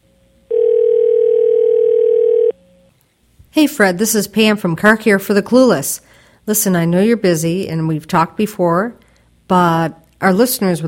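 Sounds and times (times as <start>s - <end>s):
telephone dial tone while placing a call: 0.5s - 2.6s
speech: 3.6s - 10.8s.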